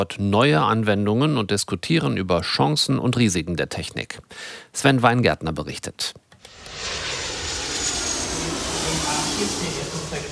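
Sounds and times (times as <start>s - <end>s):
speech: 0.0s - 6.6s
passenger airliner taking off or landing: 6.4s - 10.2s.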